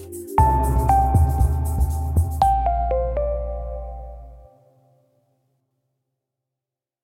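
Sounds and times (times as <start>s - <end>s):
sound logo jingle: 0.4s - 4.5s.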